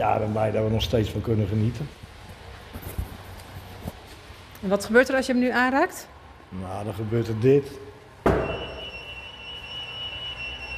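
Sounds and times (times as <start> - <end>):
speech: 0.0 - 2.1, 4.6 - 8.4
museum security alarm: 8.3 - 10.7.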